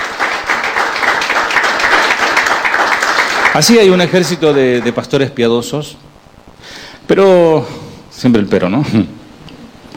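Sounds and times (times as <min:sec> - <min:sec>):
audience applause: 0:00.0 - 0:05.2
speech: 0:03.6 - 0:06.2, 0:07.1 - 0:09.2.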